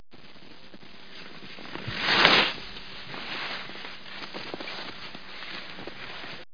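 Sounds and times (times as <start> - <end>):
skis stopping: 0.4 - 6.5.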